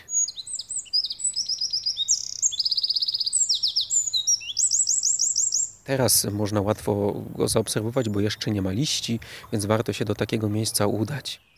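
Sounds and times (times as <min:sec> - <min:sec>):
small brown songbird singing shrill varied song: 0:00.0 - 0:11.5
faint low hum: 0:05.8 - 0:11.5
speech: 0:05.9 - 0:11.5.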